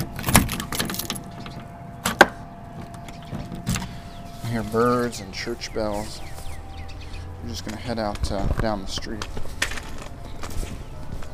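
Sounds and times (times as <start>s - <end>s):
low steady hum: 0.0s - 11.3s
keys jangling while locking a door: 0.2s - 1.6s
speech: 4.5s - 6.3s, 7.4s - 9.5s.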